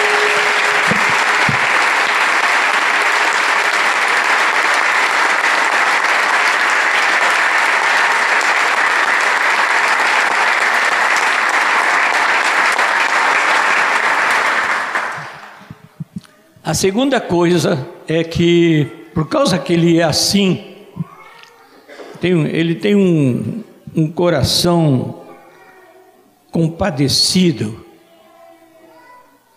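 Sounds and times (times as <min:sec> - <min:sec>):
audience applauding: 0:00.0 - 0:16.1
speech: 0:16.7 - 0:20.7, 0:22.2 - 0:25.2, 0:26.5 - 0:27.8.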